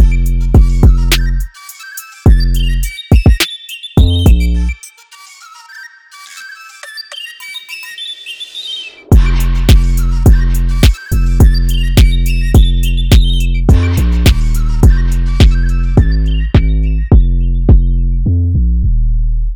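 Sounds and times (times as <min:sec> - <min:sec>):
minimal trap beat: 0:00.0 - 0:04.8, 0:09.1 - 0:18.9
flute melody: 0:00.0 - 0:17.5.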